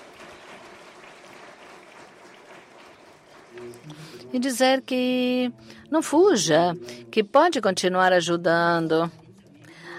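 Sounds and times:
audience applause: 0:00.0 - 0:03.9
speech: 0:03.6 - 0:09.2.

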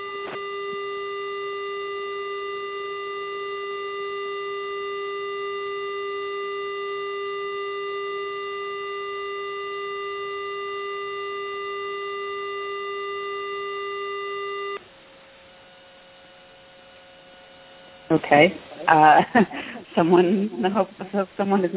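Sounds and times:
alarm: 0:00.0 - 0:14.8
speech: 0:18.1 - 0:21.7.

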